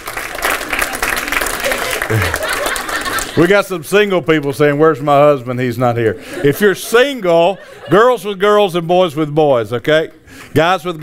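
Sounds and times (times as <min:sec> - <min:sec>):
audience clapping: 0:00.0 - 0:03.6
laughter: 0:01.6 - 0:03.8, 0:06.0 - 0:08.6
speech: 0:02.1 - 0:02.4, 0:03.4 - 0:11.0.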